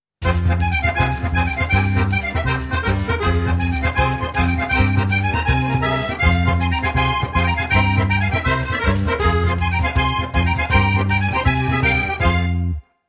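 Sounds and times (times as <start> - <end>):
jingle: 0.2 - 13.0.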